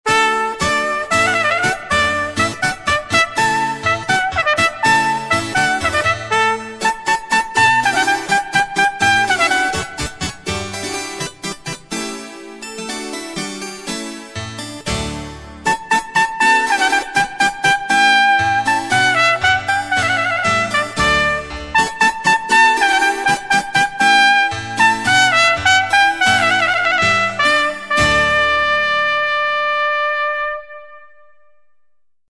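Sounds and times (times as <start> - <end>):
baroque hornpipe: 0.1 - 11.0, 15.7 - 31.1.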